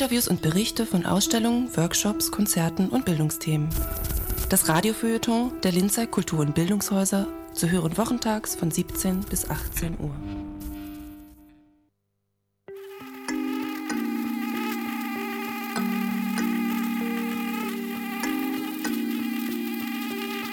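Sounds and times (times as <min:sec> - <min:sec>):
speech: 0:00.0 - 0:10.4
mosquito buzzing: 0:12.7 - 0:20.5.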